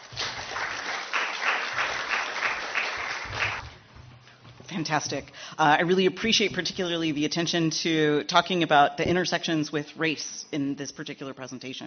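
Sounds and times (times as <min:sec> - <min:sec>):
audience applause: 0:00.0 - 0:03.6
speech: 0:04.8 - 0:11.8.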